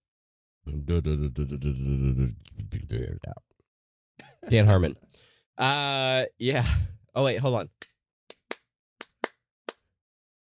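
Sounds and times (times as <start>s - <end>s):
laughter: 0.7s - 2.3s
speech: 0.7s - 3.5s, 4.2s - 7.8s
hand claps: 7.8s - 9.8s.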